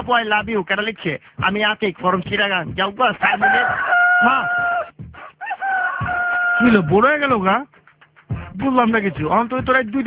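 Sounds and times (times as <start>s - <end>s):
speech: 0.0s - 4.8s, 6.6s - 7.8s, 8.6s - 10.0s
chicken crowing: 3.2s - 6.8s.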